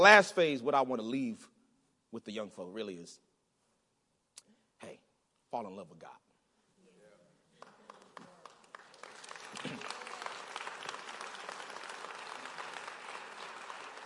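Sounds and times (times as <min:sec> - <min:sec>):
speech: 0:00.0 - 0:01.5, 0:02.1 - 0:03.3, 0:04.8 - 0:06.2
adults clapping: 0:07.5 - 0:14.0.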